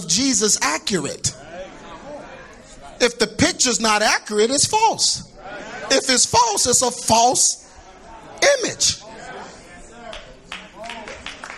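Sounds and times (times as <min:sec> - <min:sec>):
speech: 0:00.0 - 0:01.6, 0:03.0 - 0:07.6, 0:08.6 - 0:09.1
murmur of voices: 0:00.0 - 0:11.5
scattered audience clapping: 0:10.1 - 0:11.5.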